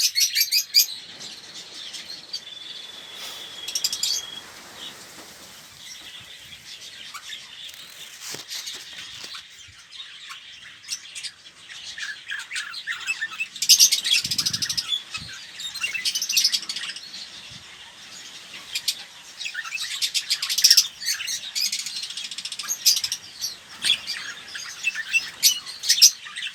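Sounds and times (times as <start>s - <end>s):
red-rumped parrot Psephotus haematonotus song of sharp chirping and rattling trills: 0.0s - 26.5s.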